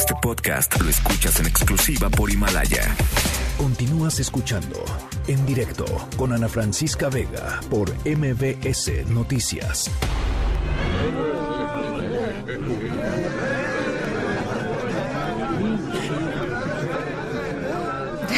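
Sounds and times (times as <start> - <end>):
speech: 0.2 - 11.5
laughter: 10.7 - 18.3
sounds of a social gathering: 11.1 - 18.3.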